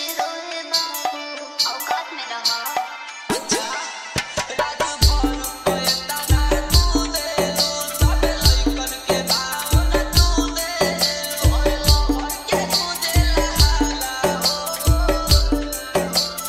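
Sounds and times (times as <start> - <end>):
hard bass DJ remix: 3.3 - 16.4.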